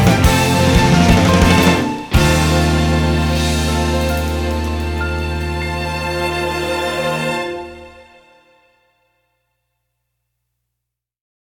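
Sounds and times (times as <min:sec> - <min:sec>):
instrumental music: 0:00.0 - 0:08.8.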